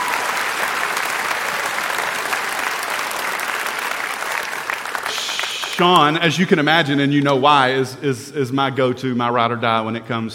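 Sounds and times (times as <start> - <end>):
audience hand clapping: 0.0 - 7.6
speech: 5.8 - 10.3.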